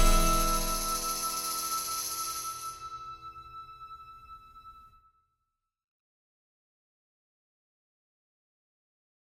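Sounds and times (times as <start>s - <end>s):
tavern music: 0.0s - 4.9s.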